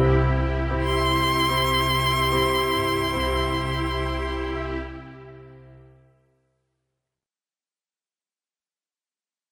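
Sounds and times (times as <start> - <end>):
melody: 0.8 - 5.8.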